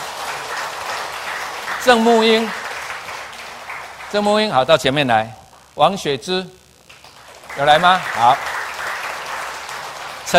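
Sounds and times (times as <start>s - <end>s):
audience applause: 0.0s - 4.8s, 6.9s - 10.3s
speech: 1.8s - 2.6s, 4.1s - 6.6s, 7.6s - 8.5s.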